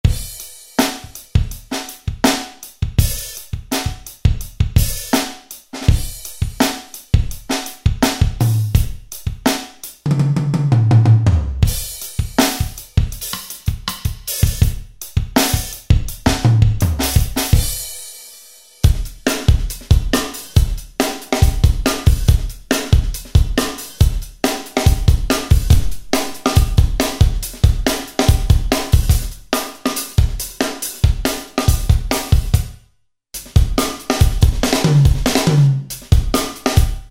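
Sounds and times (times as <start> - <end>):
funk music: 0.1 - 17.8, 18.9 - 32.7, 33.4 - 37.0.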